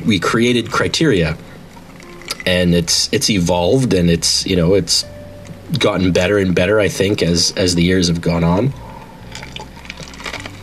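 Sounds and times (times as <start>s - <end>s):
speech: 0.0s - 1.5s, 2.4s - 8.8s
chewing on ice: 8.8s - 10.6s.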